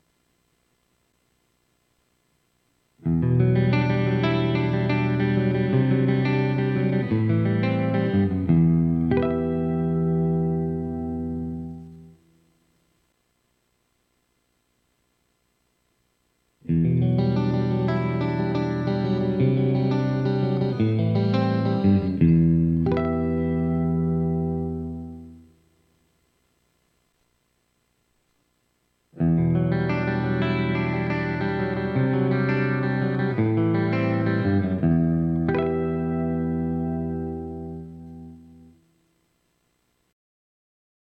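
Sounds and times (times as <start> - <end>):
clean electric guitar through mini humbucker dual rail pickup: 3.0 - 12.6, 16.6 - 25.8, 29.1 - 39.0.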